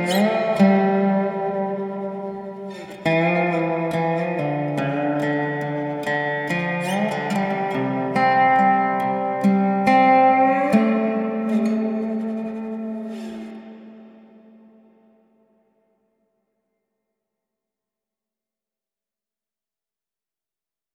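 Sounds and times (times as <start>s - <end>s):
dobro guitar: 0.0s - 15.2s.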